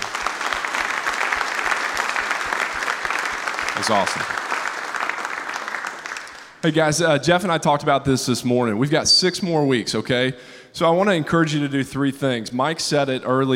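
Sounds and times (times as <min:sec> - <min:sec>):
audience applause: 0:00.0 - 0:06.6
speech: 0:03.8 - 0:04.5, 0:06.6 - 0:13.5.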